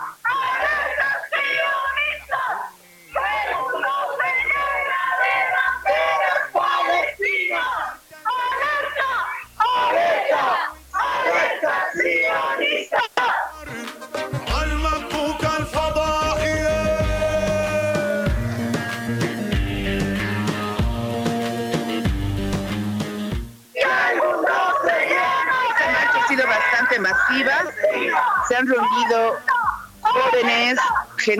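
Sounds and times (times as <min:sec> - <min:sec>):
protest crowd shouting and chanting in a plaza: 0:00.0 - 0:13.7, 0:16.2 - 0:18.4, 0:23.7 - 0:31.3
drumming or rhythmic pounding: 0:13.7 - 0:23.6.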